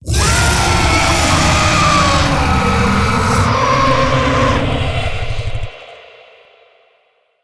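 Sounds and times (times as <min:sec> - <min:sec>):
death growl vocals: 0:00.0 - 0:05.8.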